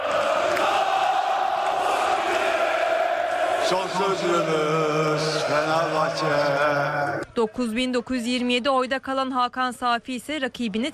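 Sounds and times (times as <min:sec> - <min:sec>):
crowd chanting and cheering celebrating election win: 0:00.0 - 0:07.6
speech: 0:03.7 - 0:10.9.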